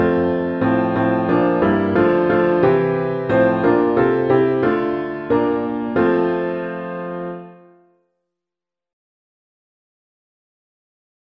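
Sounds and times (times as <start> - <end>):
piano piece: 0.0 - 8.0.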